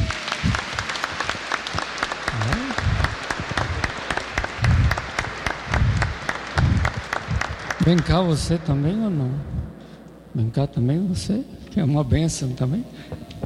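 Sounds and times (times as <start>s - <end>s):
audience applauding for children: 0.0s - 9.4s
speech: 7.9s - 9.6s, 10.4s - 13.4s.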